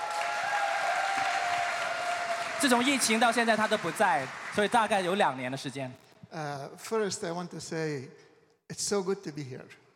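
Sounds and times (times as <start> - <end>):
audience applause: 0.0 - 5.4
speech: 2.6 - 9.8.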